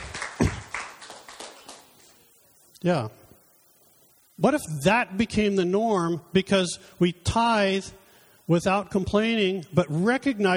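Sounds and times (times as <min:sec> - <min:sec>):
audience applause: 0:00.0 - 0:02.0
speech: 0:02.8 - 0:03.2, 0:04.4 - 0:10.5.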